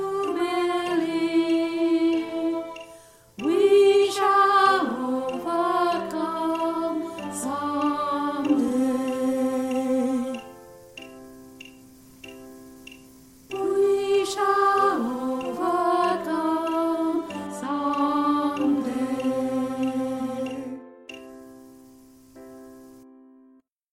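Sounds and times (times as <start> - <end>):
soprano singing: 0.0 - 10.8, 13.5 - 21.2.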